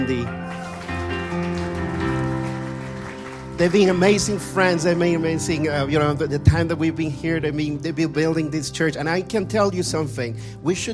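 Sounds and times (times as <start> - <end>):
speech: 0.0 - 0.6, 3.6 - 10.9
audience clapping for church leaders: 0.0 - 5.2.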